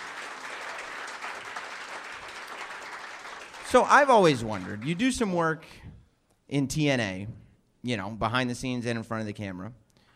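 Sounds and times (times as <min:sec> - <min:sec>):
round of applause: 0:00.0 - 0:05.6
speech: 0:03.7 - 0:05.9, 0:06.5 - 0:09.8.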